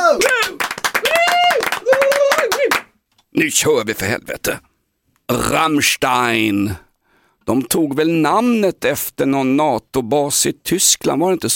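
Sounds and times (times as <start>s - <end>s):
applause: 0.0s - 3.0s
speech: 3.4s - 4.7s, 5.3s - 6.8s, 7.4s - 11.5s.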